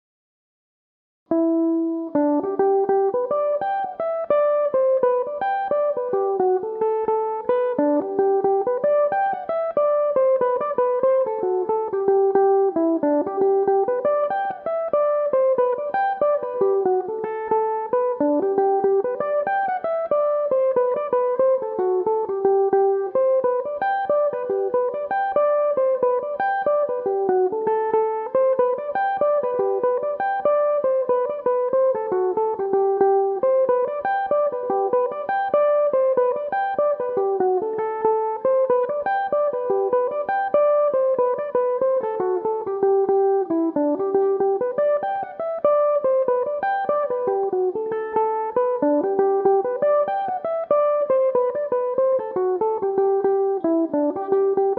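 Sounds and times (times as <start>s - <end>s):
mandolin playing in G major: 1.4s - 54.7s.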